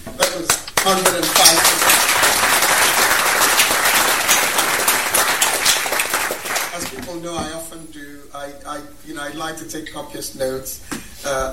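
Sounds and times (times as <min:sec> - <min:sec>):
audience applause: 0:00.2 - 0:07.1
speech: 0:00.4 - 0:01.9, 0:07.1 - 0:11.5.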